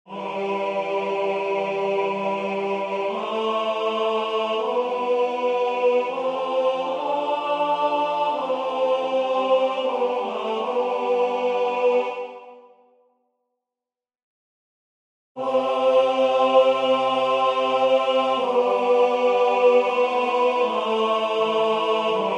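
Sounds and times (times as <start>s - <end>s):
tenor singing: 0.1s - 12.6s, 15.4s - 22.3s.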